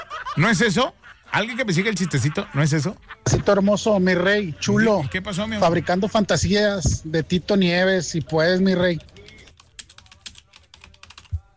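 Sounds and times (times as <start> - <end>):
laughter: 0.0 - 6.4
speech: 0.4 - 9.1
fingers typing on a computer keyboard: 8.0 - 11.5.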